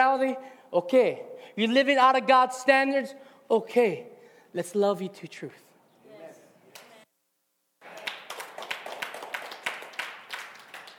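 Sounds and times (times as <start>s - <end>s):
speech: 0.2s - 5.7s
audience clapping: 7.8s - 10.9s.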